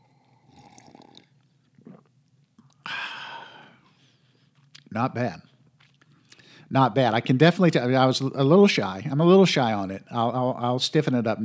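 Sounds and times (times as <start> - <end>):
slurping sip of medium roast coffee: 0.3 - 2.2
speech: 5.0 - 5.5, 6.7 - 11.4.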